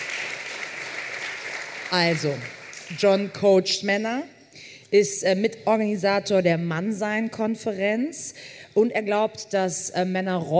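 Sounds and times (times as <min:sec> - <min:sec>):
audience applause: 0:00.0 - 0:02.9
speech: 0:01.9 - 0:10.5.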